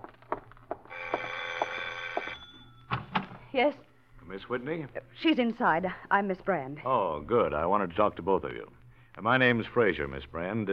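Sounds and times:
doorbell ringing: 0.9s - 3.0s
speech: 3.6s - 10.7s.

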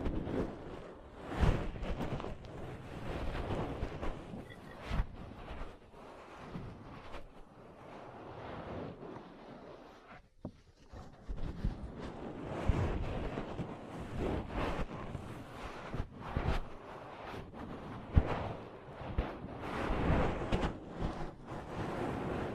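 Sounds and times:
rustling rubs and scrapes of ear cleaning and massage: 0.0s - 22.5s.

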